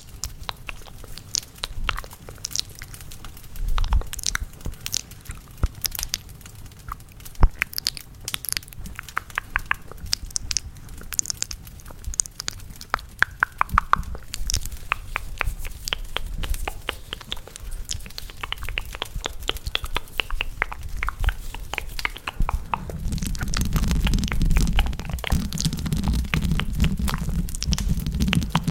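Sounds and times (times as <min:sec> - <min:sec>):
fireplace crackling: 0:00.0 - 0:28.7
intense mouth sounds with wet clicks and smacks: 0:00.0 - 0:28.7.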